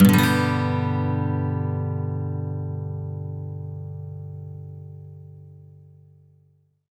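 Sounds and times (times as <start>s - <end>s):
electric guitar loop with major sweep in G: 0.0s - 4.4s
acoustic guitar loop with major sweep in G: 0.0s - 6.1s.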